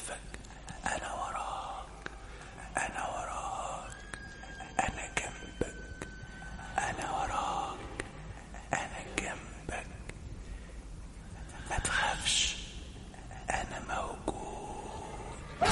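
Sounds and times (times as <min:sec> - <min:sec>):
eerie whispering voices: 0:00.0 - 0:10.4, 0:11.1 - 0:15.6
faint hiss: 0:00.0 - 0:15.6
sharp clicks: 0:03.8 - 0:05.0.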